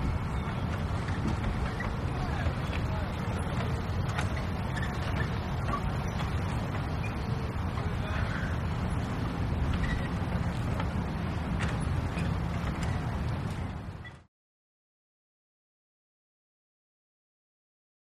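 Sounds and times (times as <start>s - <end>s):
lake ambience in a big city: 0.0s - 14.2s.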